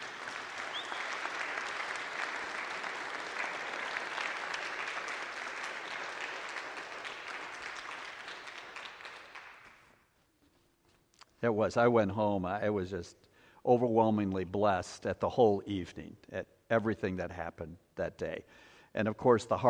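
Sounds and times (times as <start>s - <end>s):
audience applause: 0.0s - 9.9s
speech: 11.4s - 19.6s.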